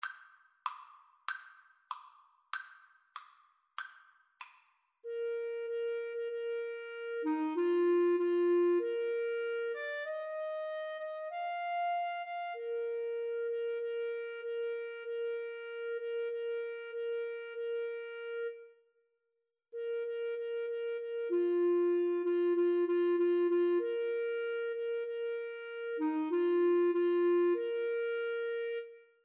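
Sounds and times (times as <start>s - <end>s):
flute and clarinet duet: 5.0s - 18.8s, 19.8s - 29.2s.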